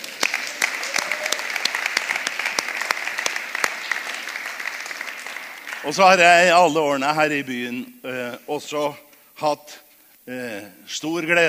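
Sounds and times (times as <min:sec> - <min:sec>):
audience applause: 0:00.0 - 0:06.2
speech: 0:05.8 - 0:11.4.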